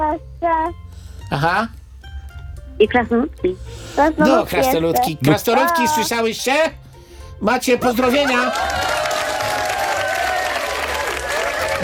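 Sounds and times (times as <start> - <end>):
speech: 0.2 - 1.8, 2.8 - 6.8, 7.4 - 8.9
clapping: 8.0 - 11.8.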